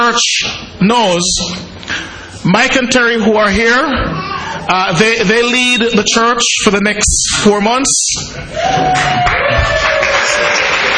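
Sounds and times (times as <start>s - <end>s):
speech: 0.1s - 1.7s, 2.4s - 9.3s
audience applauding: 8.7s - 10.9s.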